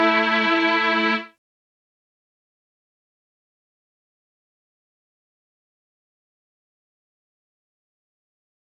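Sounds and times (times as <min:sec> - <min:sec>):
chords: 0:00.0 - 0:01.4.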